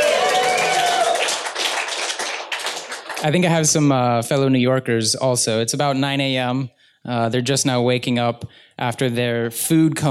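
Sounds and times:
crowd applauding: 0.0s - 3.8s
speech: 3.2s - 10.0s.

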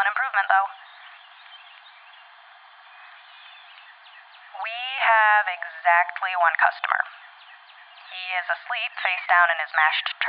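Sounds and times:
speech: 0.3s - 0.8s, 4.6s - 7.2s, 8.2s - 10.2s
diurnal bird calls at night: 0.4s - 5.1s, 6.9s - 9.2s.

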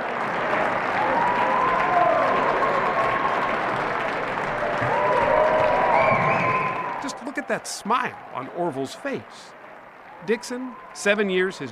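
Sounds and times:
scattered cheers: 0.0s - 8.8s, 10.0s - 11.6s
crowd applauding: 0.0s - 11.6s
high whistles: 5.9s - 7.1s
speech: 7.5s - 9.6s, 10.2s - 11.6s.

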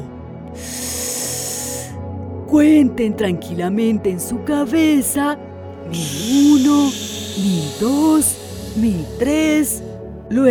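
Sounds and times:
deep inhalation through the nose: 0.5s - 2.0s, 6.0s - 9.3s
speech: 2.5s - 10.4s.

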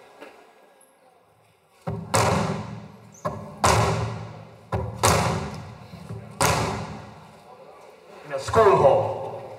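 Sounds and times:
hammer blows striking a mural to mimic gunshots: 1.9s - 7.0s
speech: 8.4s - 9.1s.

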